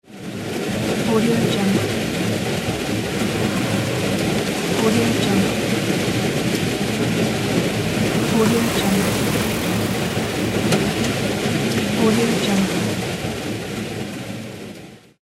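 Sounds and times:
rain on car: 0:00.2 - 0:15.0.

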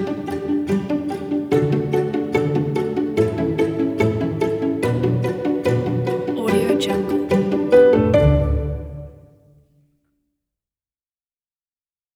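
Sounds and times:
inspiring storytelling pizzicato strings: 0:00.0 - 0:09.4.

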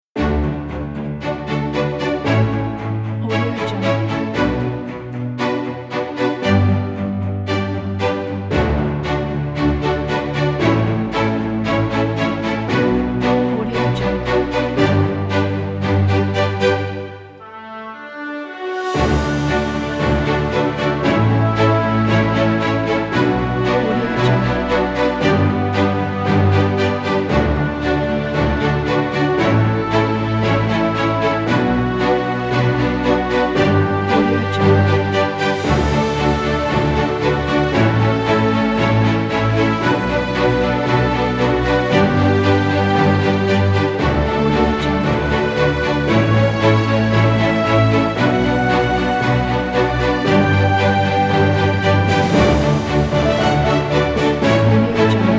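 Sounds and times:
orchestral percussion kit: 0:00.2 - 0:55.3.

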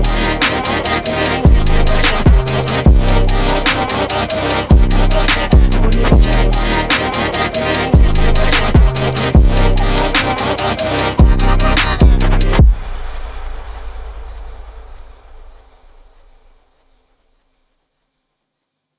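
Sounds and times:
future bass music: 0:00.0 - 0:13.1.

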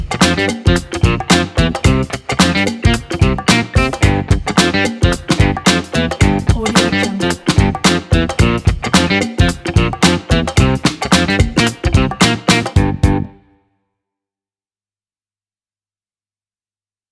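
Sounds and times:
funk intro logo groove: 0:00.0 - 0:13.3.

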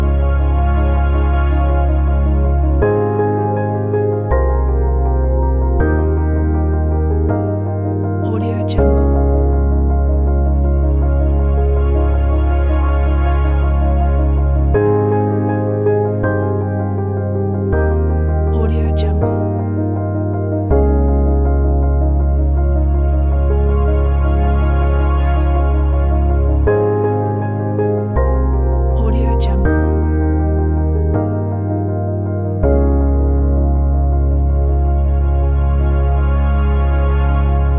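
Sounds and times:
inspiring ambient soundscape: 0:00.0 - 0:37.7.

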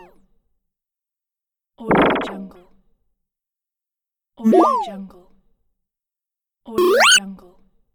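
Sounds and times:
playful sound effects: 0:01.9 - 0:02.5, 0:06.8 - 0:07.2.

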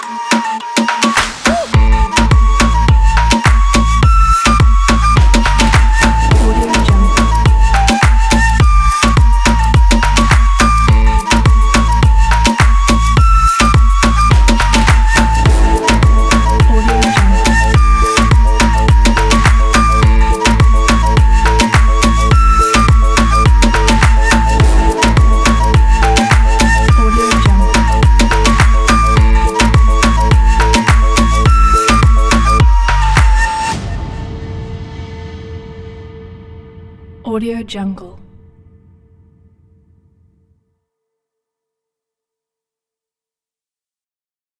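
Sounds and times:
Egyptian dark pop music: 0:00.0 - 0:34.6.

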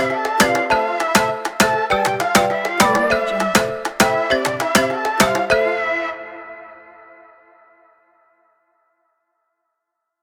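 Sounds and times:
upbeat tropical summer dancehall music: 0:00.0 - 0:06.8.

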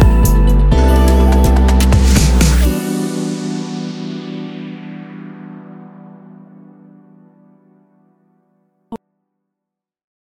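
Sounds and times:
chill hip hop music: 0:00.0 - 0:07.7.

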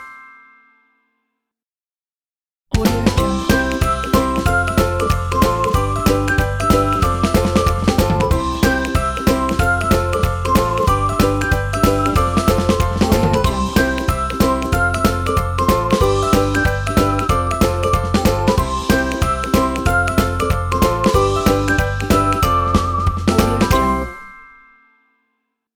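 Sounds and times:
ukulele: 0:02.8 - 0:24.5
whistle: 0:03.4 - 0:17.7, 0:18.4 - 0:24.6.

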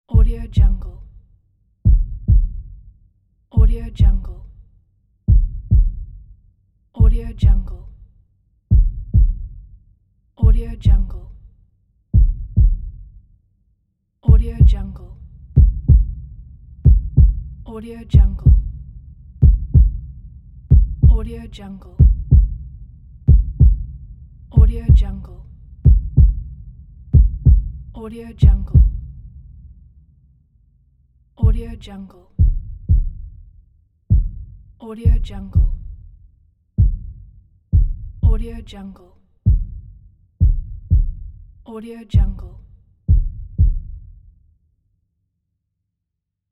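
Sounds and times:
heartbeat: 0:00.1 - 0:00.9, 0:01.8 - 0:02.8, 0:03.6 - 0:04.4, 0:05.3 - 0:06.2, 0:07.0 - 0:07.8, 0:08.7 - 0:09.7, 0:10.4 - 0:11.2, 0:12.2 - 0:13.1, 0:14.3 - 0:29.6, 0:31.4 - 0:33.4, 0:34.1 - 0:36.1, 0:36.8 - 0:38.6, 0:39.5 - 0:41.4, 0:42.2 - 0:44.2.

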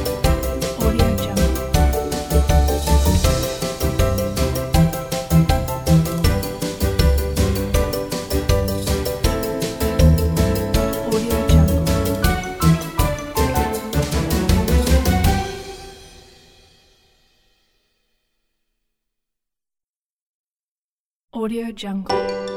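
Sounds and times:
funny stroll music: 0:00.0 - 0:16.9, 0:22.1 - 0:22.5.

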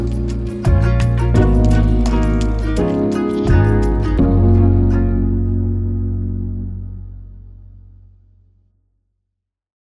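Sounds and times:
lo-fi beats: 0:00.0 - 0:06.6.

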